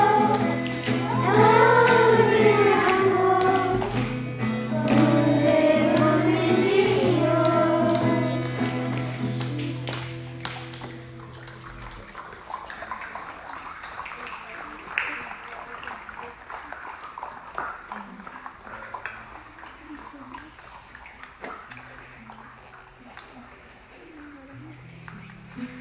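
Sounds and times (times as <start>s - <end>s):
Portuguese song: 0.0s - 9.7s.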